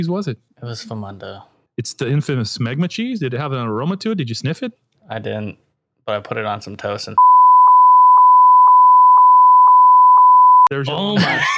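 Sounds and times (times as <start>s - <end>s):
speech: 0.0s - 7.3s, 10.7s - 11.5s
long censor bleep: 7.2s - 10.7s
laughter: 11.0s - 11.5s.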